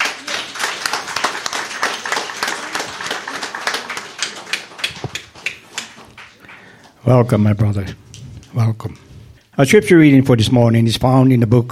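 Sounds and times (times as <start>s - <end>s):
church congregation clapping to welcome a preacher: 0.0s - 7.0s
speech: 7.0s - 9.0s, 9.6s - 11.7s.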